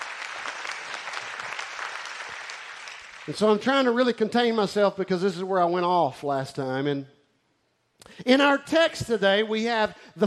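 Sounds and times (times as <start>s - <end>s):
audience clapping hands: 0.0s - 4.0s
speech: 3.2s - 7.2s, 8.2s - 10.2s.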